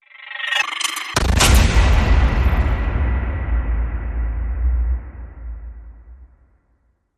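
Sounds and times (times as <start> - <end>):
diffused fuse hit: 1.2 - 6.9.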